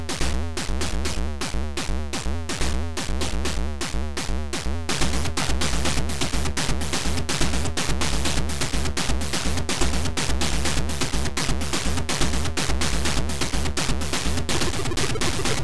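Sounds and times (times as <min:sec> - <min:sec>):
game music: 0:00.1 - 0:15.6.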